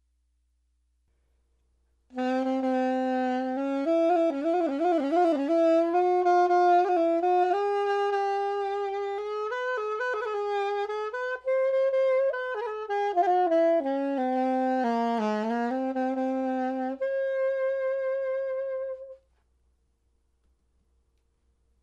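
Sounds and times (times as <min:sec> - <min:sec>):
soprano saxophone: 0:02.1 - 0:19.4.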